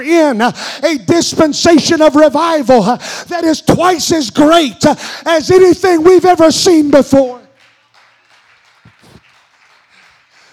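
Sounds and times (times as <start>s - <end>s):
speech: 0.0s - 7.4s
audience clapping: 7.5s - 10.5s.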